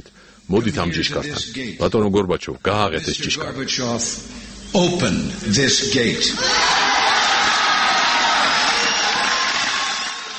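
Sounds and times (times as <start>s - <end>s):
speech: 0.0s - 6.8s
large crowd applauding and cheering during Ronald Reagan's speech to Gorbachev: 6.4s - 10.3s.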